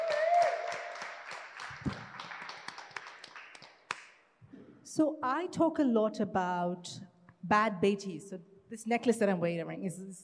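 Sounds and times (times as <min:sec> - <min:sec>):
audience applause: 0:00.0 - 0:04.0
speech: 0:05.0 - 0:10.2.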